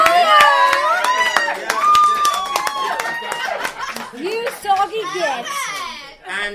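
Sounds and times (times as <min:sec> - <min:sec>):
round of applause: 0:00.0 - 0:06.0
laughter: 0:01.5 - 0:05.7.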